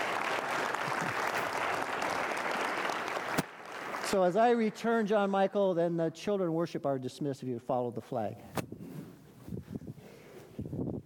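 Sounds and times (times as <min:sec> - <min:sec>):
audience applause: 0:00.0 - 0:04.8
speech: 0:04.1 - 0:08.7.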